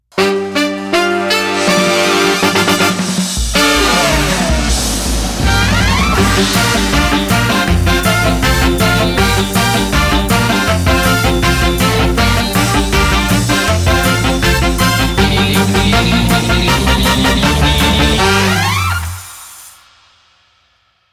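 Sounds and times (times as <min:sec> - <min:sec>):
brassy tone: 0:00.1 - 0:19.7.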